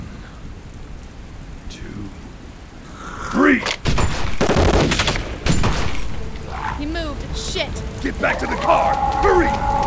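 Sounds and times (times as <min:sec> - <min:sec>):
speech: 0:03.4 - 0:03.8, 0:08.0 - 0:09.7
gunshots: 0:03.6 - 0:06.2.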